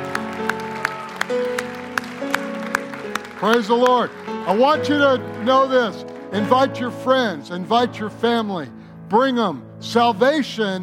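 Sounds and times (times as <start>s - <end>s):
audience clapping in rhythm: 0.0s - 7.3s
sustained keyboard or organ chords: 0.0s - 10.8s
speech: 3.4s - 10.8s.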